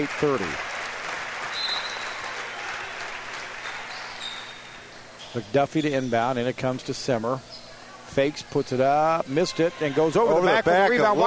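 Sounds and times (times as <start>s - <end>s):
speech: 0.0s - 0.7s, 5.3s - 7.5s, 8.1s - 11.2s
Streaks crowd applauding players leaving the floor: 0.0s - 4.8s.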